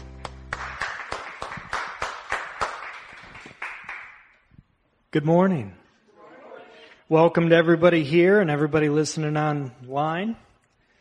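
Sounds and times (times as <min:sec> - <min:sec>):
audience cheering and clapping: 0:00.0 - 0:04.3
speech: 0:05.1 - 0:05.8, 0:07.1 - 0:10.5.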